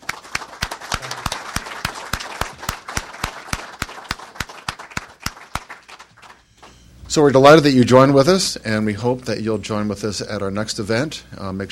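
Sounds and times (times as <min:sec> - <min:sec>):
audience applause: 0:00.0 - 0:06.4
speech: 0:07.1 - 0:11.7.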